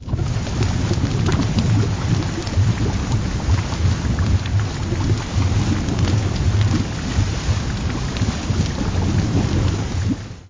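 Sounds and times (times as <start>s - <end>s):
lava burbling: 0.0s - 10.4s.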